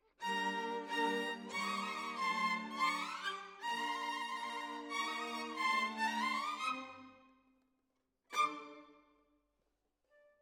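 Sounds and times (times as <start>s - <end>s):
violins: 0.2s - 7.3s, 8.3s - 9.0s.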